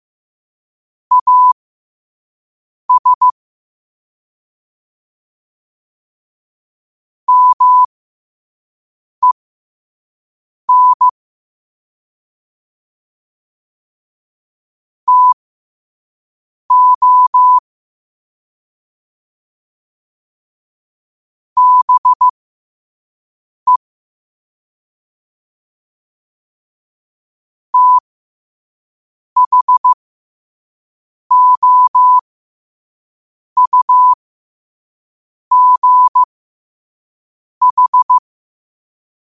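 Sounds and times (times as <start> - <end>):
morse code at 5 wpm: 1.1 - 1.6, 2.9 - 3.4, 7.3 - 7.9, 10.7 - 11.1, 15.1 - 15.4, 16.7 - 17.6, 21.6 - 22.4, 27.8 - 28.0, 29.4 - 30.0, 31.3 - 32.2, 33.6 - 34.2, 35.5 - 36.3, 37.6 - 38.2.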